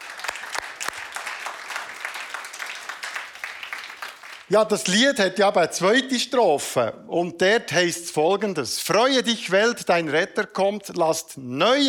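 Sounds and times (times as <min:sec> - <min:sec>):
audience applause: 0:00.0 - 0:04.5
speech: 0:04.5 - 0:11.8.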